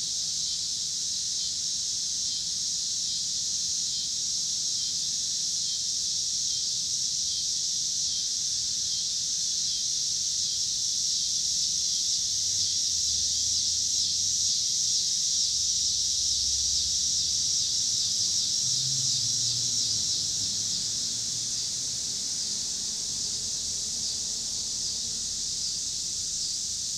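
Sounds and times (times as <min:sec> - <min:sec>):
cicadas buzzing: 0:00.0 - 0:26.9
low rumbling of passing cars: 0:16.3 - 0:26.5.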